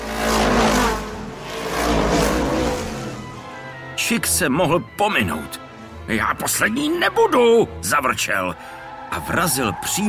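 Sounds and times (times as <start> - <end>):
race car engine roaring and accelerating: 0.0 - 3.9
speech: 4.1 - 10.0.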